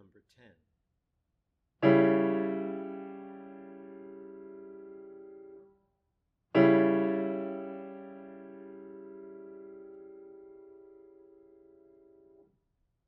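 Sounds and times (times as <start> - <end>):
chords: 1.8 - 5.6, 6.6 - 12.3.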